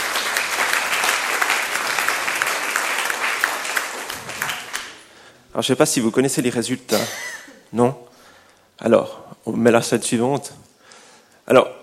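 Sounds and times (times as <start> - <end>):
audience applause: 0.0 - 5.0
speech: 5.6 - 8.0, 8.8 - 10.7, 11.5 - 11.8.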